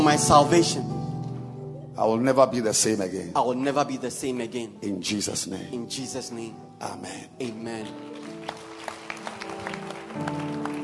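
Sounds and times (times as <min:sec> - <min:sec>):
speech: 0:00.0 - 0:01.0, 0:02.0 - 0:08.3, 0:10.2 - 0:10.5
audience clapping: 0:07.4 - 0:10.8.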